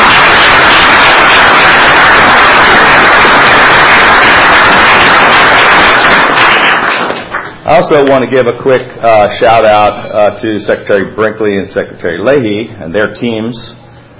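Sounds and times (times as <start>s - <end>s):
audience applause: 0.0s - 7.6s
speech: 7.7s - 13.8s.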